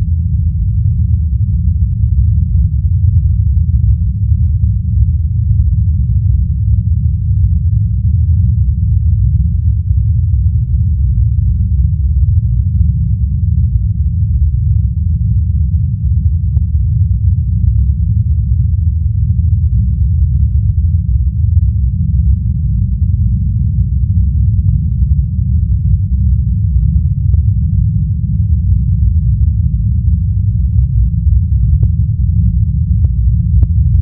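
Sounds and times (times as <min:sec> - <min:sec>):
spaceship interior rumbling drone: 0:00.0 - 0:34.0.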